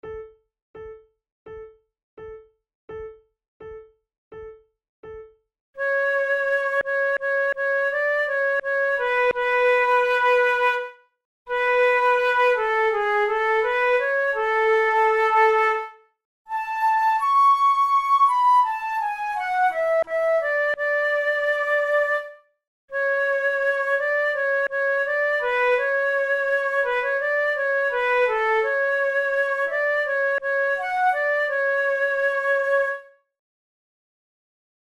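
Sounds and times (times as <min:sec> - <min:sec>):
flute duet: 0:05.8 - 0:33.2.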